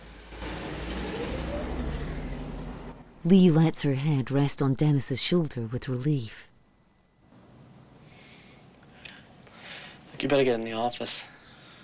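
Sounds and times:
car approaching and driving off: 0:00.0 - 0:03.2
speech: 0:03.2 - 0:06.5, 0:10.2 - 0:11.3.

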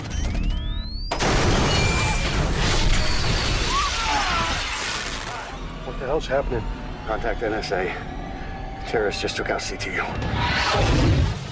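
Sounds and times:
rising electronic whine of an EMP blast: 0:00.0 - 0:11.5
speech: 0:06.2 - 0:08.1, 0:08.9 - 0:11.2.

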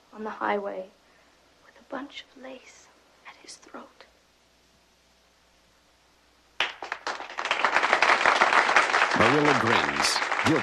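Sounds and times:
speech: 0:00.1 - 0:01.0, 0:01.9 - 0:04.1, 0:09.2 - 0:10.6
audience clapping: 0:06.6 - 0:10.6.

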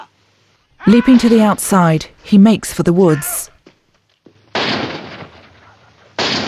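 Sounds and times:
speech: 0:00.9 - 0:03.5
prison camp guard gunshots: 0:04.5 - 0:06.4.

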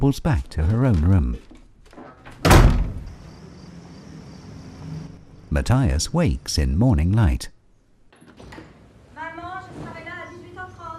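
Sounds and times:
speech: 0:00.0 - 0:01.5, 0:05.5 - 0:07.5
door slamming: 0:02.2 - 0:03.2.

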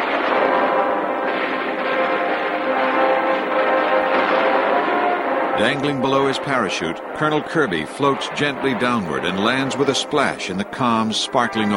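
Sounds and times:
barrage of exploding anti-aircraft rounds: 0:00.0 - 0:11.7
speech: 0:05.6 - 0:11.7.

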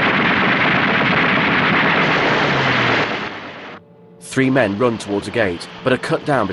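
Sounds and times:
fuel barrels exploding: 0:00.0 - 0:03.8
rapid gunfire: 0:00.0 - 0:03.8
speech: 0:04.4 - 0:06.5.

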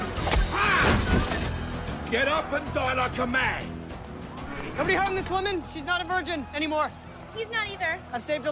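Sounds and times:
ferocious slap: 0:00.2 - 0:01.3
speech: 0:02.1 - 0:03.8, 0:04.8 - 0:08.4.

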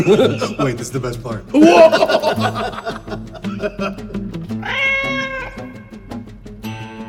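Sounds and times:
laughter: 0:00.0 - 0:00.9, 0:01.6 - 0:04.2
speech: 0:00.0 - 0:04.1
busy percussive sounds: 0:00.0 - 0:06.4
cartoon cat Tom meowing in a video: 0:04.6 - 0:05.9.

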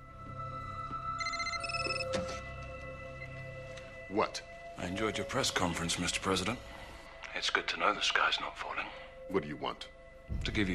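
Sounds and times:
cell phone ringing: 0:01.2 - 0:02.4
speech: 0:04.1 - 0:06.8, 0:07.4 - 0:10.7.

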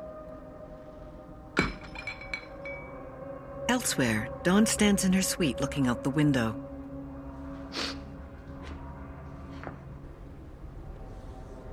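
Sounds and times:
glass clinking as drink is poured: 0:01.6 - 0:03.0
speech: 0:03.7 - 0:06.7.

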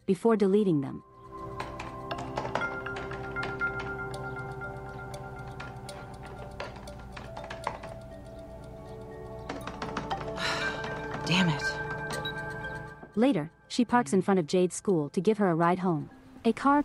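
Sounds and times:
speech: 0:00.1 - 0:01.1, 0:11.3 - 0:11.8, 0:13.2 - 0:16.8
soft sustained musical drone: 0:01.1 - 0:15.0
typing on a laptop keyboard: 0:01.4 - 0:12.9.

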